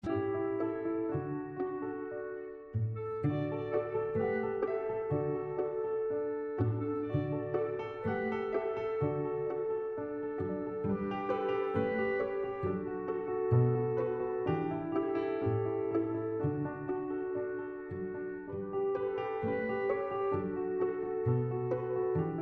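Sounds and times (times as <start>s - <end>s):
musette music: 0.0s - 22.3s.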